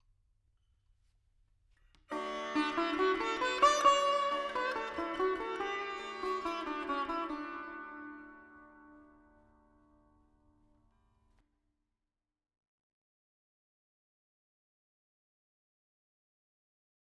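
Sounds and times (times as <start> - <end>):
veena in D with reverb: 2.1 - 11.4.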